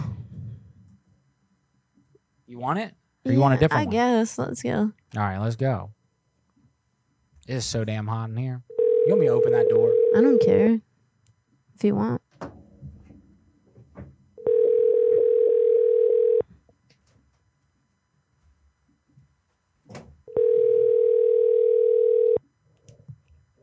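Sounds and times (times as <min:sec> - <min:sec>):
speech: 0:02.5 - 0:06.0, 0:07.5 - 0:10.9, 0:11.8 - 0:12.6
telephone ringing tone: 0:08.7 - 0:10.6, 0:14.4 - 0:16.4, 0:20.3 - 0:22.4.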